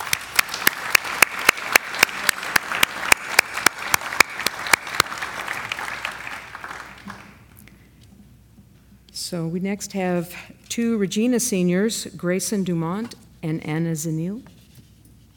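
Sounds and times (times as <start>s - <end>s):
audience applause: 0.0s - 7.4s
speech: 9.3s - 14.5s.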